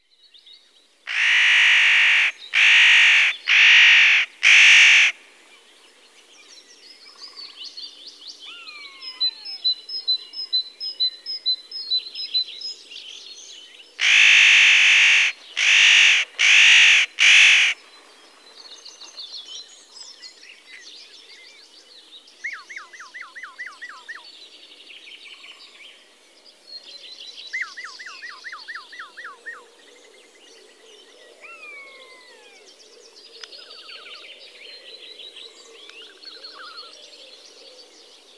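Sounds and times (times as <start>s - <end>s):
spotted nutcracker calling: 1.1s - 5.2s, 14.0s - 17.8s.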